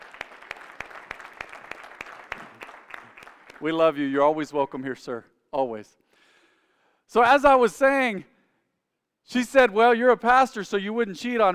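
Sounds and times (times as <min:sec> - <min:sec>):
audience applauding: 0:00.0 - 0:03.8
speech: 0:03.6 - 0:06.0, 0:07.1 - 0:08.3, 0:09.2 - 0:11.5.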